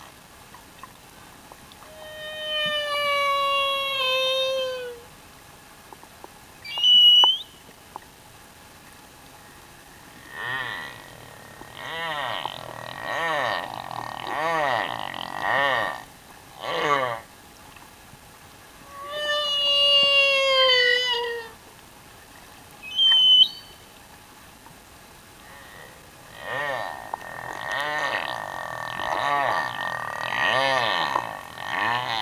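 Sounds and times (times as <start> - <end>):
humpback whale singing in Tonga: 1.8 - 5.1, 6.6 - 7.6, 10.1 - 16.1, 18.8 - 21.6, 22.8 - 23.9, 25.4 - 32.2.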